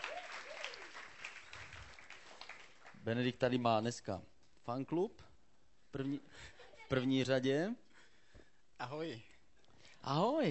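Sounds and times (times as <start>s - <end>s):
audience applause welcoming a speaker onto the stage: 0.0s - 3.0s
speech: 3.0s - 5.3s, 5.9s - 7.8s, 8.8s - 9.3s, 10.0s - 10.4s.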